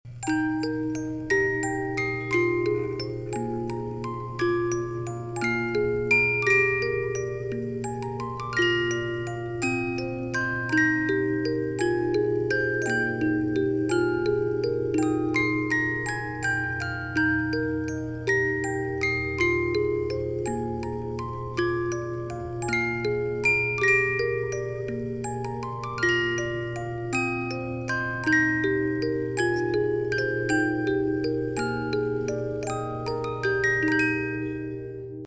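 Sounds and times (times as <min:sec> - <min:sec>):
thirty-note music box playing a waltz: 0:00.1 - 0:35.2.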